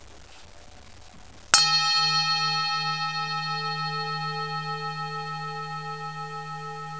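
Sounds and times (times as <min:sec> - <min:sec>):
bowl being tapped: 0:01.6 - 0:06.9.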